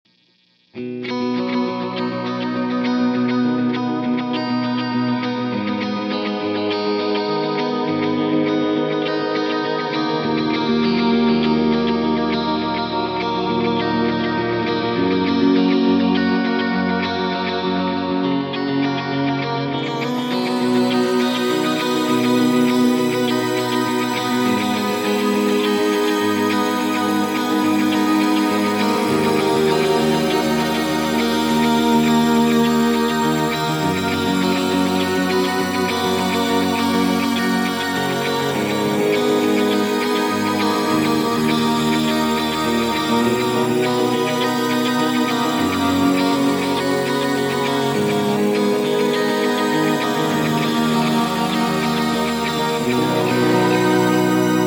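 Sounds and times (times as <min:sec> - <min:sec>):
Axe-Fx shimmer effect: 0:00.8 - 0:54.6.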